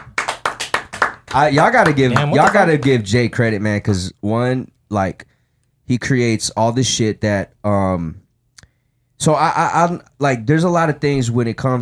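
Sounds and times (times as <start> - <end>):
people clapping: 0.0 - 3.2
speech: 1.3 - 5.3, 5.9 - 8.2, 9.2 - 11.8.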